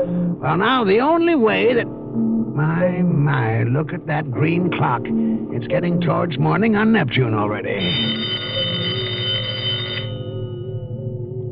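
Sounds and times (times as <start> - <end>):
speech: 0.0 - 8.6
low hum: 0.0 - 11.5
telephone bell ringing: 7.8 - 11.0.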